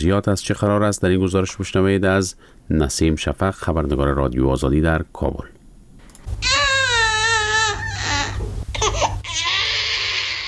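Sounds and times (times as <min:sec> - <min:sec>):
speech: 0:00.0 - 0:05.6
newborn baby crying: 0:06.4 - 0:10.4.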